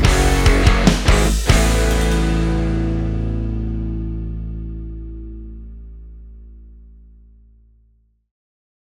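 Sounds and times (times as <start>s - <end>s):
rock channel intro music: 0.0s - 5.8s.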